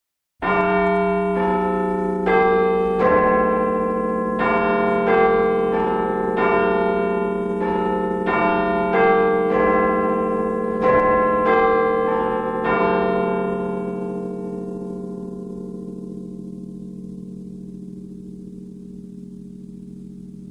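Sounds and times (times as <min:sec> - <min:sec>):
Big Ben clock bell chiming: 0:00.4 - 0:15.1.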